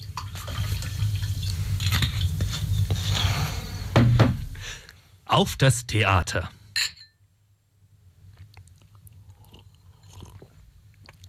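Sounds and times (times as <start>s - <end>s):
low hum: 0.0s - 11.2s
speech: 5.3s - 6.6s
glasses clinking: 6.8s - 7.2s.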